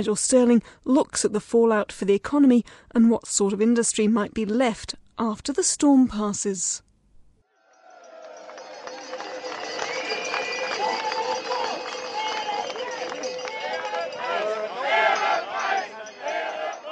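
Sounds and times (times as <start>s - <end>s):
speech: 0.0s - 6.9s
crowd of protesting dairy farmers in Brussels: 7.5s - 16.9s.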